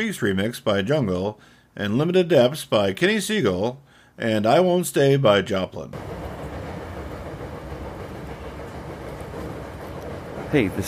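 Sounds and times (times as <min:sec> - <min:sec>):
speech: 0:00.0 - 0:06.1, 0:10.5 - 0:10.8
train running on the rails in Osaka heard aboard: 0:06.0 - 0:10.8.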